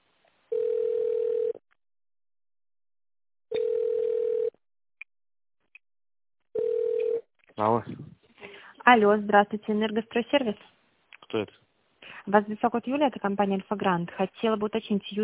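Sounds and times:
telephone ringback tone while on hold: 0:00.5 - 0:01.6, 0:03.5 - 0:04.6, 0:06.6 - 0:07.2
speech: 0:07.6 - 0:08.2, 0:08.9 - 0:10.7, 0:11.3 - 0:11.6, 0:12.2 - 0:15.2.

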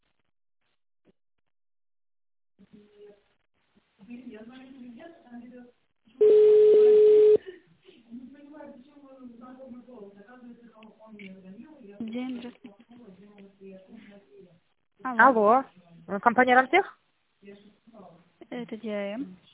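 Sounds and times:
speech: 0:04.0 - 0:06.5, 0:09.6 - 0:19.4
telephone keypad tone dialing a company's extension line: 0:06.2 - 0:07.4.

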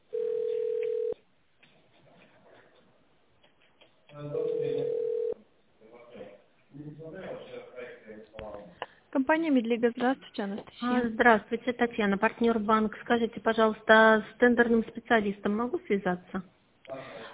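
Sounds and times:
telephone ringback tone while on hold: 0:00.1 - 0:01.2, 0:04.4 - 0:05.4
speech: 0:09.2 - 0:16.6.

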